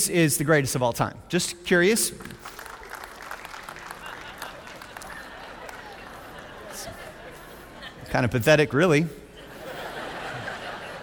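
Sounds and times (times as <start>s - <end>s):
speech: 0.0s - 2.6s, 8.1s - 9.2s
audience applause: 2.4s - 7.4s
laughter: 3.6s - 8.4s, 9.3s - 11.0s.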